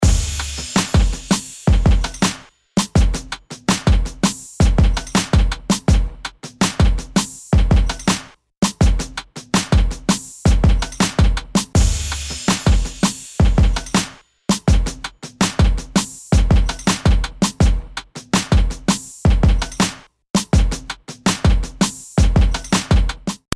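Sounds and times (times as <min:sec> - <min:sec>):
clean beat: 0:00.0 - 0:23.5.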